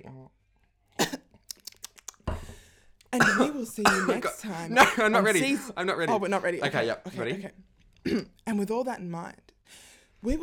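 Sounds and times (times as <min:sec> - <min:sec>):
clicky mouth sounds: 0:01.4 - 0:02.3
speech: 0:03.1 - 0:10.4
person clearing throat: 0:03.2 - 0:05.6, 0:08.1 - 0:08.4.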